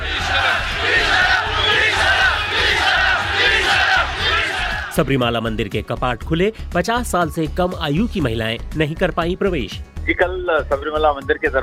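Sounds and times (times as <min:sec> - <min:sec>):
protest crowd chanting and shouting in the streets: 0:00.0 - 0:05.2
speech: 0:05.0 - 0:11.6.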